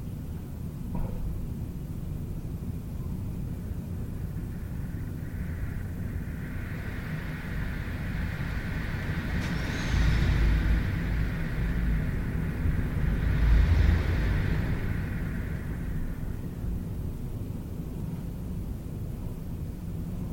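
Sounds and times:
wind roaring through trees and across open fields: 1.4 - 20.3
higher whooshing drone: 3.4 - 18.0.

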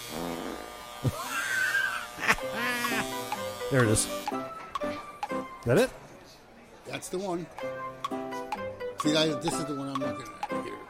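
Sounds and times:
electric beard trimmer cutting a beard: 0.0 - 4.5
speech: 3.7 - 4.5, 5.6 - 6.0, 6.9 - 8.2, 9.0 - 10.6.

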